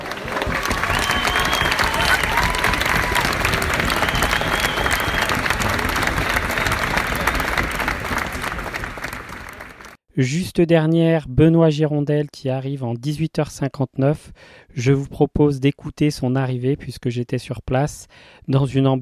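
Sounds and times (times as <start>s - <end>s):
crowd applause at race finish: 0.0s - 10.0s
speech: 10.2s - 18.9s.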